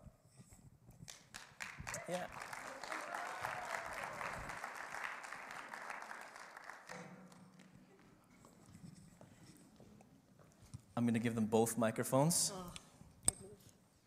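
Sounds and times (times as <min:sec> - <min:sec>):
audience applause for a couple invited on stage: 0:01.1 - 0:08.2
speech: 0:02.1 - 0:02.4, 0:11.0 - 0:12.8.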